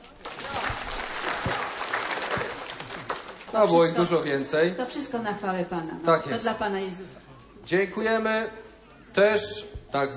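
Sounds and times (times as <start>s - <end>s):
crowd applause: 0.0s - 4.5s
speech: 3.5s - 10.1s.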